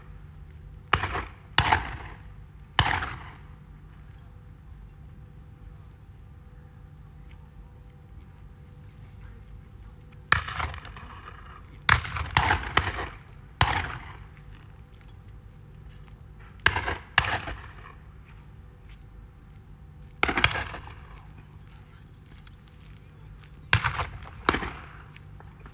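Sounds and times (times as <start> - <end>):
shotgun blasts: 0.9 - 3.4, 10.3 - 14.3, 16.6 - 18.0, 20.2 - 21.2, 23.7 - 25.1.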